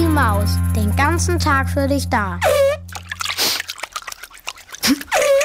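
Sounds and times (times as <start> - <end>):
speech: 0.2 - 2.7
water dripping and splashing into a shallow basin: 2.7 - 5.4.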